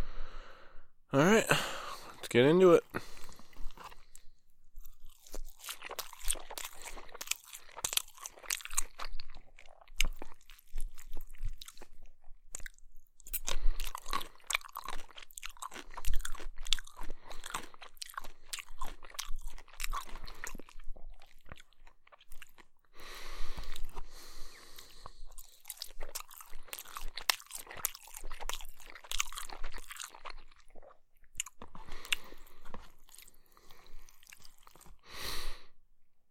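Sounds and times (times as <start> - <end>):
speech: 1.1 - 1.6, 2.3 - 3.2
person chewing chicken and rice: 1.6 - 35.6.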